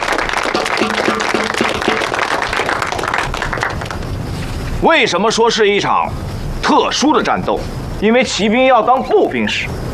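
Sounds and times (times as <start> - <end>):
audience applause welcoming guests: 0.0 - 4.1
speech: 4.8 - 9.8.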